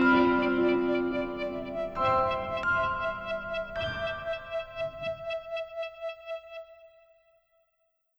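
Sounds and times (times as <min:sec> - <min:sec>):
music box: 0:00.0 - 0:05.4.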